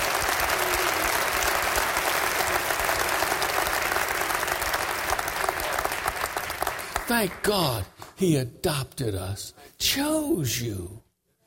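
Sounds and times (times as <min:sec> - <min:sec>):
audience applause: 0:00.0 - 0:08.2
speech: 0:07.1 - 0:11.0.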